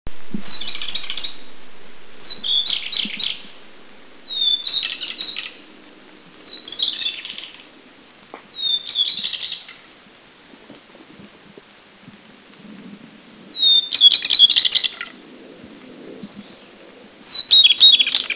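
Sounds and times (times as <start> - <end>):
Taiwan shortwing song of thin high whistles and rapid twittering at Anmashan, Taiwan: 0.4 - 1.5, 2.2 - 3.6, 4.2 - 9.8, 13.6 - 15.0, 16.4 - 18.3.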